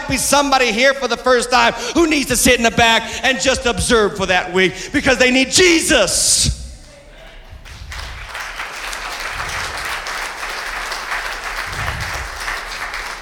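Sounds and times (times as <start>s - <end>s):
speech: 0.1s - 6.6s
audience applause: 7.6s - 13.1s.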